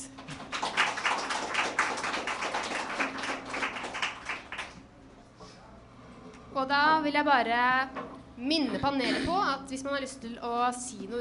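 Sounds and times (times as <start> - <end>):
audience applause: 0.3 - 4.8
speech: 6.6 - 11.1.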